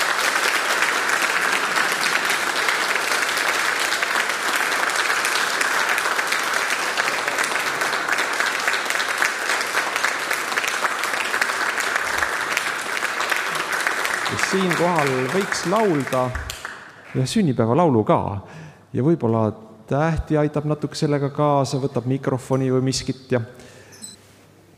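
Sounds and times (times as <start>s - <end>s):
applause: 0.0s - 17.3s
speech: 14.5s - 16.5s, 17.2s - 23.7s.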